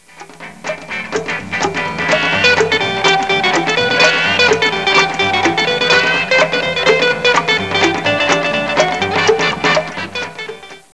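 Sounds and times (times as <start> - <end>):
instrumental music: 0.0 - 10.9.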